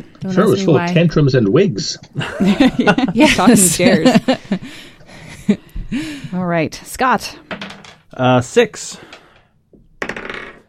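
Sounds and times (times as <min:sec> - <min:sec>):
speech: 0:00.0 - 0:04.9, 0:05.5 - 0:07.5, 0:08.2 - 0:09.2
laughter: 0:02.2 - 0:05.7
die being rolled: 0:09.8 - 0:10.6.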